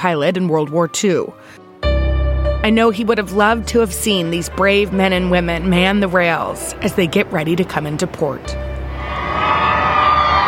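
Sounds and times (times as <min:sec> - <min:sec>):
speech: 0:00.0 - 0:01.6, 0:02.6 - 0:08.7
distant crowd cheering: 0:08.9 - 0:10.4.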